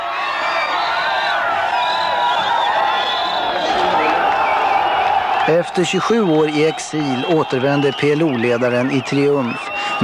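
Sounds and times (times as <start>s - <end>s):
demonstrators shouting angrily: 0.0s - 10.0s
speech: 5.5s - 10.0s.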